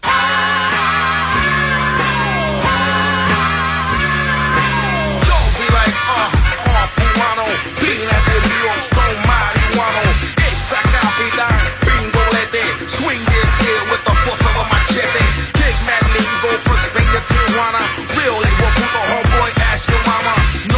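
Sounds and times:
Latin rap song: 0.0s - 20.7s.

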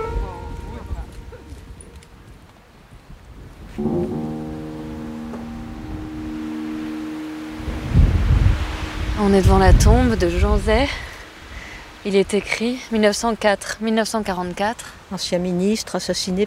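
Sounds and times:
wind blowing on the microphone: 0.0s - 12.6s
speech: 3.8s - 4.2s, 9.2s - 11.1s, 12.0s - 16.4s.

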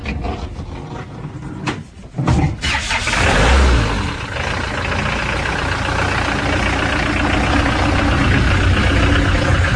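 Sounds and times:
old gendarmerie van engine cranking and idling: 2.4s - 9.7s.

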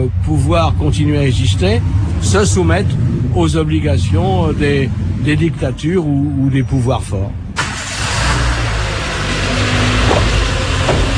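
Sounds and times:
car engine revving as it drives off: 0.0s - 6.6s, 7.5s - 11.1s
speech: 0.0s - 7.4s.

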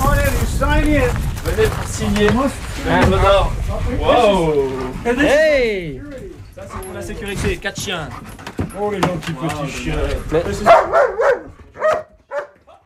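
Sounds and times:
people talking: 0.0s - 11.5s
purebred German shepherd dogs barking and whimpering: 10.6s - 12.7s.

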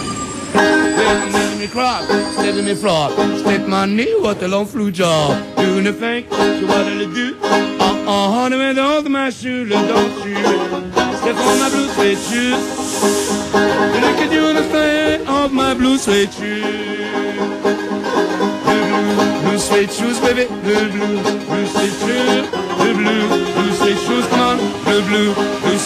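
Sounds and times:
chanson with banjo: 0.5s - 25.8s.

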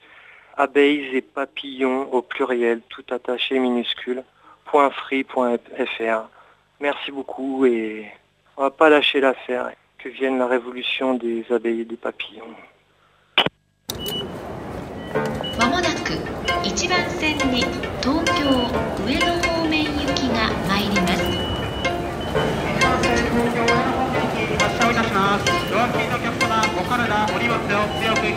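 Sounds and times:
speech: 0.6s - 12.7s, 16.1s - 21.1s, 23.0s - 28.3s
crowd voices and bustle at a busy train station at rush hour: 13.9s - 28.3s.

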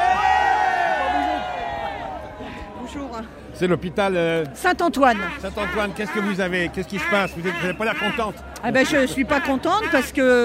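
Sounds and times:
protest crowd of hospital caregivers and workers shouting: 0.0s - 2.4s, 5.0s - 10.4s
speech: 3.6s - 10.4s.

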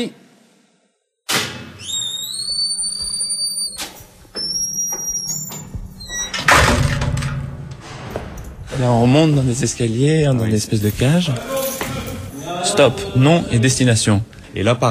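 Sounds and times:
speech: 0.0s - 0.2s, 8.8s - 11.6s, 12.6s - 14.8s
heavy metal prison door grinding open: 5.2s - 9.7s.

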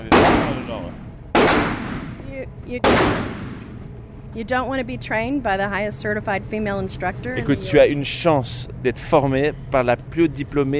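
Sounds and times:
gunshots at a shooting range: 0.0s - 2.2s, 2.8s - 3.8s
shell casings ejecting at a shooting range: 1.7s - 4.4s
speech: 2.4s - 3.6s, 4.4s - 10.7s.

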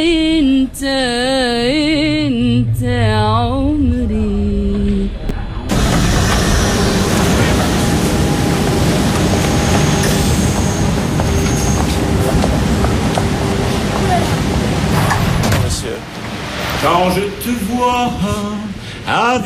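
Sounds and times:
speech: 0.0s - 4.2s, 19.1s - 19.4s
metro train running through the underground: 0.0s - 19.4s
metro train wheel squeals: 5.7s - 15.5s.

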